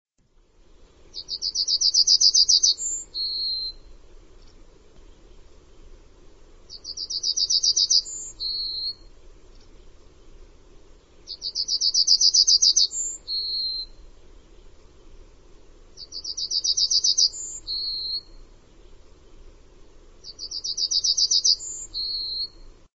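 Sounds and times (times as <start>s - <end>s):
faint low hum: 0.2s - 22.9s
bird song: 1.1s - 5.5s, 6.6s - 10.4s, 11.0s - 15.0s, 15.8s - 19.6s, 20.2s - 22.9s.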